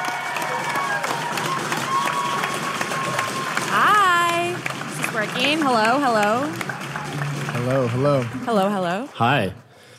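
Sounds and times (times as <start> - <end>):
audience applause at Halifax Cineplex: 0.0 - 9.9
speech: 5.2 - 6.7, 7.6 - 9.6.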